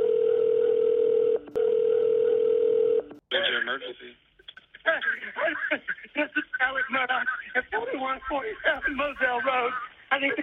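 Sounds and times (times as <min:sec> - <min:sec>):
telephone line tone: 0:00.0 - 0:03.2
speech: 0:03.8 - 0:04.2, 0:04.9 - 0:10.4.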